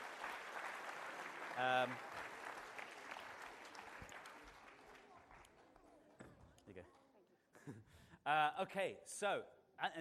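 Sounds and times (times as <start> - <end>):
audience applause: 0.0 - 5.8
speech: 1.6 - 2.2, 6.7 - 7.0, 7.7 - 9.9.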